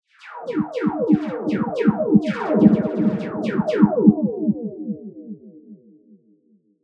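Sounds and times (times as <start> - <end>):
snare drum: 1.1 - 4.0.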